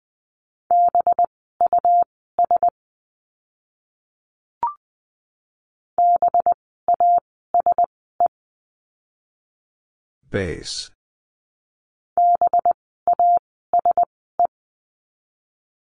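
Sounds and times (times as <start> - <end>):
Morse code tones at 20 wpm: 0.7 - 2.7, 6.0 - 7.9, 12.2 - 14.5
speech: 10.3 - 11.0.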